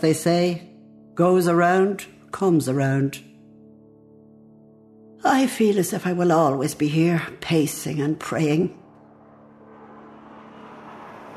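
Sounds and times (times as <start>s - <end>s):
speech: 0.0s - 3.3s, 5.2s - 8.8s
airplane near an airport landing or taking off: 9.0s - 11.3s.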